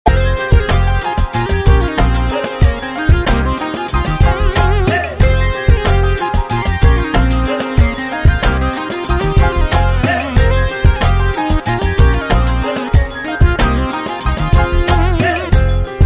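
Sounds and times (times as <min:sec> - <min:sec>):
instrumental ringtone: 0:00.1 - 0:15.9.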